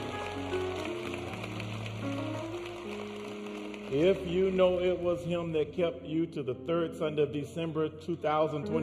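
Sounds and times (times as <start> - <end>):
audience clapping hands: 0.0 - 5.8
speech: 3.9 - 8.8.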